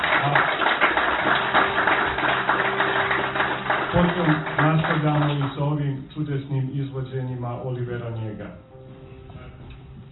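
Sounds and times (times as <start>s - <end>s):
audience applause welcoming invited guests at a public event: 0.0s - 5.8s
speech: 5.0s - 8.7s.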